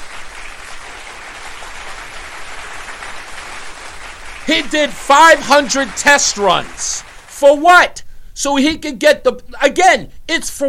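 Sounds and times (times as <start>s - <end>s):
applause: 0.0s - 7.7s
speech: 4.5s - 10.6s.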